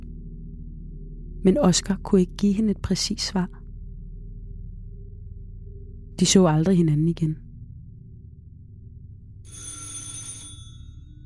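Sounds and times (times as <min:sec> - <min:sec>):
speech: 0:01.4 - 0:03.6, 0:06.2 - 0:07.4
doorbell ringing: 0:09.5 - 0:11.2.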